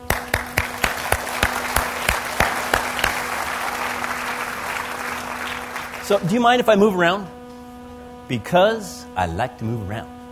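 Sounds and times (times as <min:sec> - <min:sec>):
crowd applause: 0:00.0 - 0:06.4
low constant hum: 0:00.0 - 0:10.3
speech: 0:06.1 - 0:07.4, 0:08.3 - 0:10.3.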